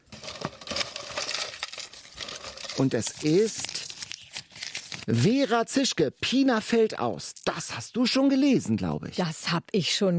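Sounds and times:
paper lot rustling as drawn from a bowl: 0.0 - 5.2
speech: 2.8 - 3.8, 5.1 - 10.1.

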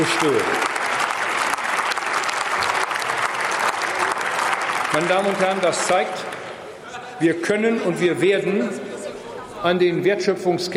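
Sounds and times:
speech: 0.0 - 0.8, 5.0 - 6.4, 7.2 - 8.8, 9.6 - 10.7
applause in parliament: 0.0 - 6.6.

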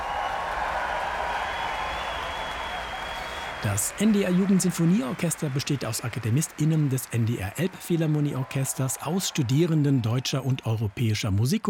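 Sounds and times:
standing ovation applause from audience: 0.0 - 11.6
speech: 3.6 - 11.6.

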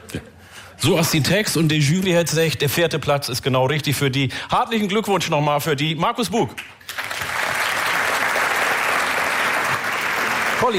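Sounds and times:
speech: 0.1 - 7.1
audience applauding a band on stage: 6.8 - 10.7.

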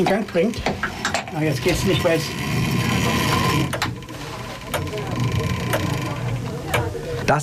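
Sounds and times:
speech: 0.0 - 3.8, 7.3 - 7.4
chapel clockwork being wound with a crank: 0.0 - 7.4
ratchet clicks of the winding crank: 0.5 - 7.0.

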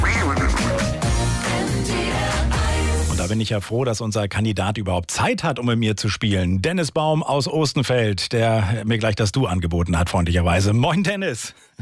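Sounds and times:
duck-quack sound effects: 0.0 - 1.0
short bouncy radio jingle music: 0.0 - 3.4
speech: 3.3 - 11.7.

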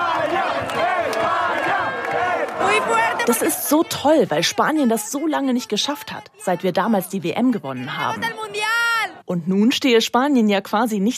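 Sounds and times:
football fans cheering in fan zone: 0.0 - 7.2, 7.8 - 9.3
speech: 2.6 - 11.1.

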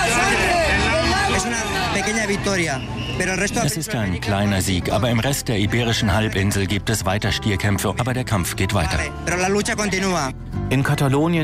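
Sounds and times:
animal rights protesters cheering outside arena: 0.0 - 3.7
speech: 2.3 - 11.4.

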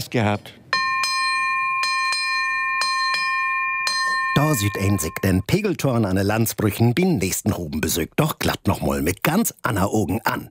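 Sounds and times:
speech: 0.0 - 0.6, 4.5 - 10.4
ship's bell ringing: 0.7 - 5.4.

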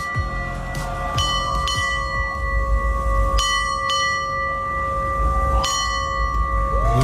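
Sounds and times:
low steady rumble: 0.0 - 7.0
ship's bell striking the time: 0.0 - 7.0.

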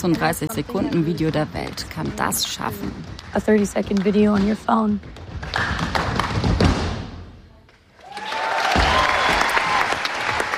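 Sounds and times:
speech: 0.0 - 5.9
audience applause after a live show: 8.0 - 10.5.

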